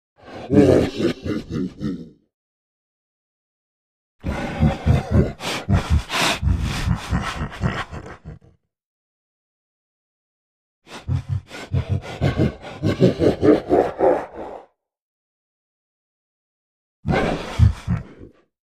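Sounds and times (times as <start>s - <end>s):
monster beast laughing evilly: 0.2s - 2.3s, 4.2s - 8.6s, 10.9s - 14.8s, 17.1s - 18.4s.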